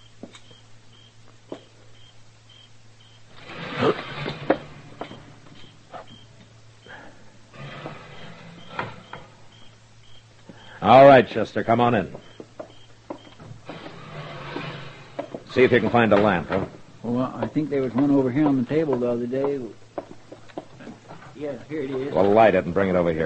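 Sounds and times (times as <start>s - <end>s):
screen door jerked open: 3.3s - 6.2s, 6.9s - 10.2s, 10.8s - 19.6s
speech: 10.9s - 12.3s, 15.6s - 19.8s, 21.4s - 23.2s.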